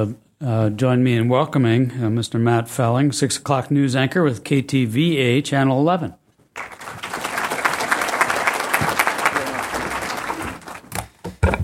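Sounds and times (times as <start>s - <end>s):
speech: 0.0s - 6.8s
audience applause: 6.6s - 11.0s.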